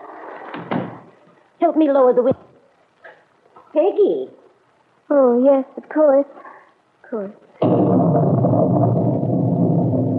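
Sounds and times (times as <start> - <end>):
hiss: 0.0 - 10.1
door closing with a thud: 0.5 - 1.1
speech: 1.6 - 2.5, 3.7 - 4.4, 5.1 - 6.4, 7.1 - 9.0.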